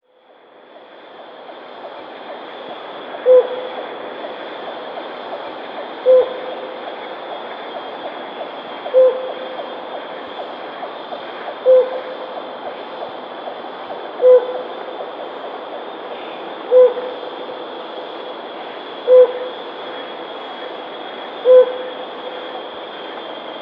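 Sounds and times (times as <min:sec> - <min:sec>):
faint hiss: 0:00.1 - 0:23.6
helmeted hornbill hooting: 0:03.2 - 0:03.9, 0:05.9 - 0:06.9, 0:08.8 - 0:10.5, 0:11.5 - 0:12.4, 0:14.2 - 0:14.8, 0:16.2 - 0:17.3, 0:19.0 - 0:19.9, 0:21.2 - 0:22.6.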